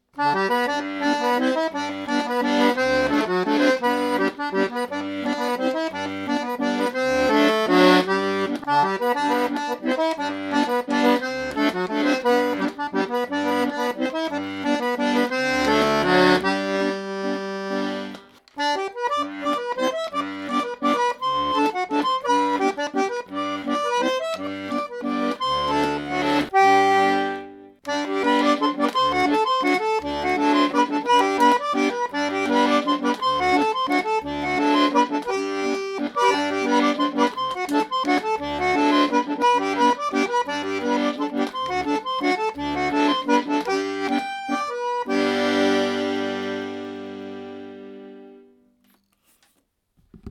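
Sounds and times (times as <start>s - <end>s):
MEINEL bandonion playing a mazurka: 0.2s - 48.5s.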